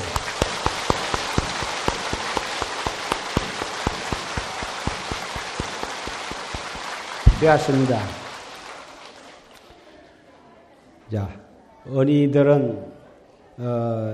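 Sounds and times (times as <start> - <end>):
applause: 0.0 - 9.8
speech: 7.4 - 8.2, 11.1 - 13.0, 13.6 - 14.1.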